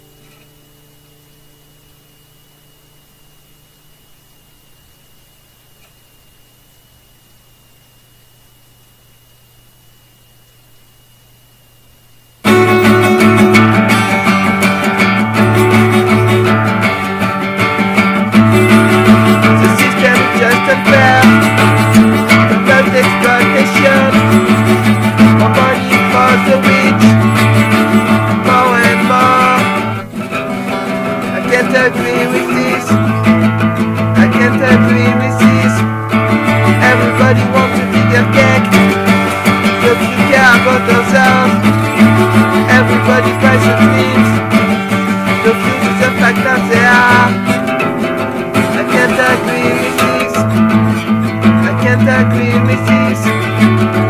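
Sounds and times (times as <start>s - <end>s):
acoustic session music: 12.4s - 54.0s.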